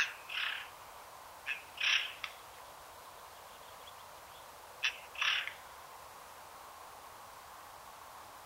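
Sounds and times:
Eurasian jay Garrulus glandarius calls: 0.0 - 0.8, 1.5 - 2.3, 4.8 - 5.6.

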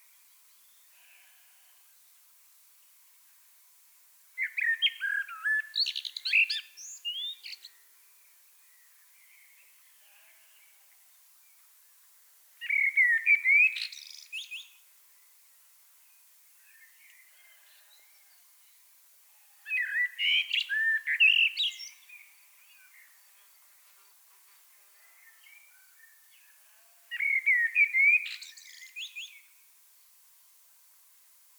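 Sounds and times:
Common blackbird song: 4.4 - 11.7, 12.6 - 18.9, 19.5 - 29.6.

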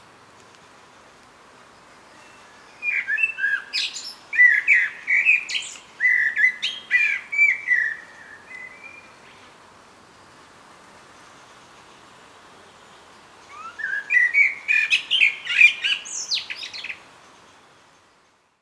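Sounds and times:
common blackbird song: 1.9 - 9.5, 12.6 - 18.1.

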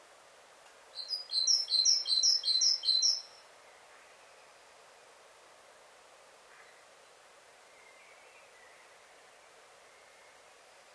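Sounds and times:
faint steady hiss: 0.0 - 10.9
Great tit calling: 1.0 - 3.3.

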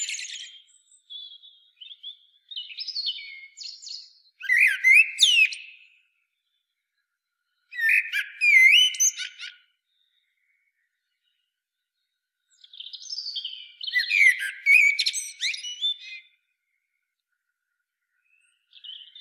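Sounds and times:
common blackbird song: 0.0 - 6.0, 7.7 - 9.8, 12.6 - 16.4.

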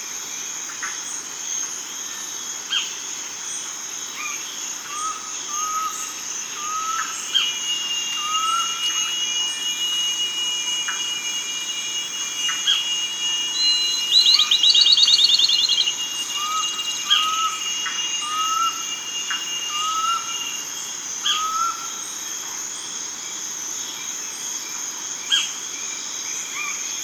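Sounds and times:
steady high insect drone: 0.0 - 27.0
bird trills and chirps: 13.5 - 18.8.

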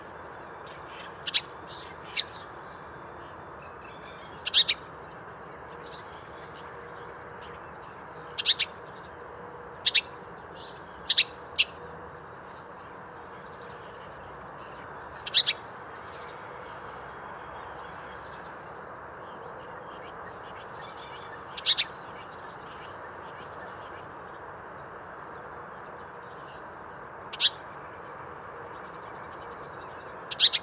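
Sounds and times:
house sparrow chirping: 1.0 - 2.5, 4.1 - 4.8, 8.3 - 8.8, 9.9 - 11.8, 15.2 - 15.7, 20.5 - 22.3, 27.3 - 27.6, 30.3 - 30.6.

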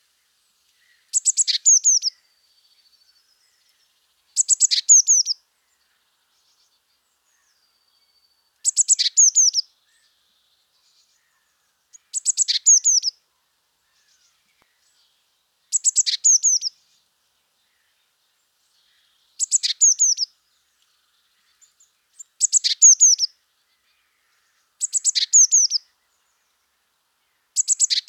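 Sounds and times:
Eurasian blue tit calling: 1.1 - 2.1, 4.4 - 5.4, 8.6 - 9.7, 11.9 - 13.2, 15.7 - 16.8, 19.4 - 20.3, 22.2 - 23.3, 24.8 - 25.8, 27.6 - 28.0.

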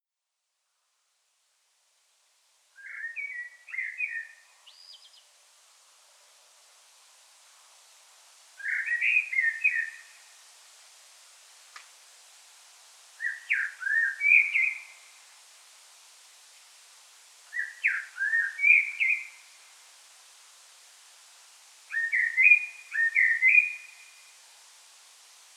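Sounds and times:
Common blackbird fluted whistle song phrases: 2.8 - 5.1, 8.6 - 10.1, 13.2 - 14.9, 17.5 - 19.4, 21.9 - 24.2
faint click: 11.7 - 12.0.

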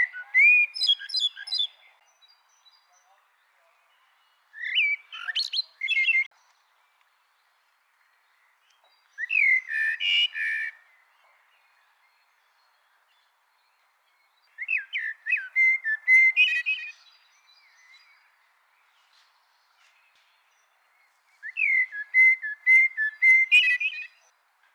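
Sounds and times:
Eurasian blackbird singing: 0.0 - 3.2, 3.8 - 6.3, 8.4 - 18.4, 20.4 - 24.3.

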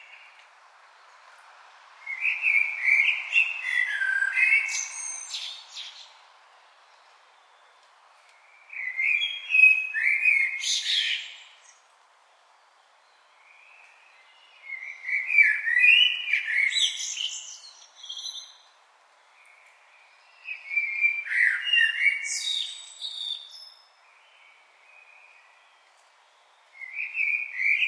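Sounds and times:
common blackbird song whistles and twitters: 2.1 - 6.1, 8.5 - 11.8, 13.0 - 18.7, 20.2 - 27.8.

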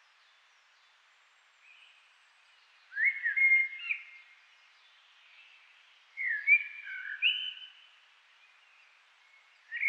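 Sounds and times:
Eurasian blackbird song: 2.9 - 4.2, 6.2 - 7.8, 9.7 - 9.8.

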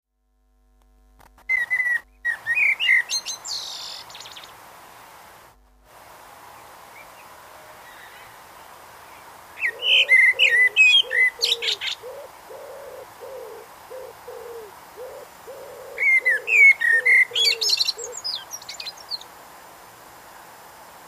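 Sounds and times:
Eurasian blackbird singing: 1.5 - 4.5, 9.1 - 19.3
deep repeated dove-like coos: 9.6 - 18.5.

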